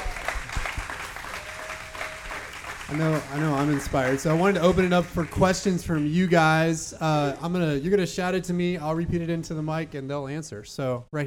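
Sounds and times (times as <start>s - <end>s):
audience applause: 0.0s - 6.7s
speech: 2.9s - 11.2s.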